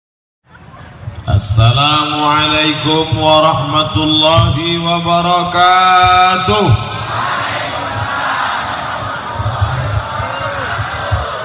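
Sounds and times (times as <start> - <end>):
speech: 1.3 - 7.3
crowd answering an Islamic greeting in unison: 6.4 - 11.4.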